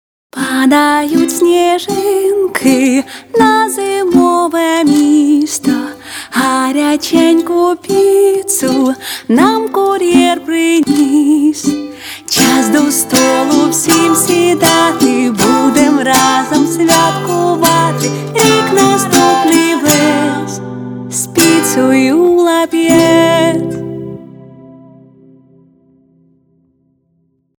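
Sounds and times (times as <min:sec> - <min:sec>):
ukulele guitar playing: 0:00.4 - 0:25.4.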